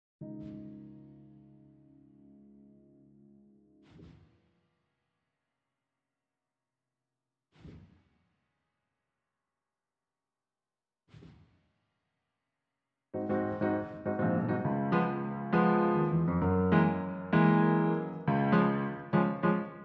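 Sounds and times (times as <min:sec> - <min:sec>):
keyboard playing: 0:13.2 - 0:19.8.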